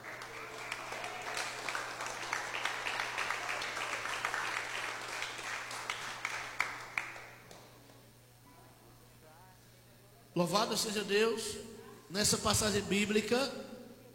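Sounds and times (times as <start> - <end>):
crowd applause in a reverberant room: 0.0 - 7.7
speech: 10.4 - 13.7.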